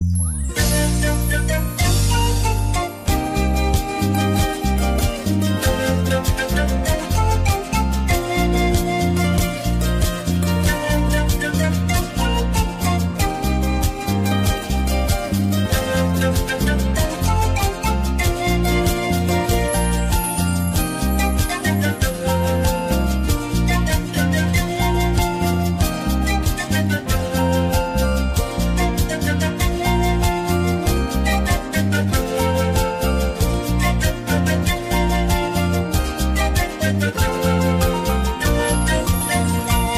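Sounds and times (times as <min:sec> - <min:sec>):
background music: 0:00.0 - 0:39.9.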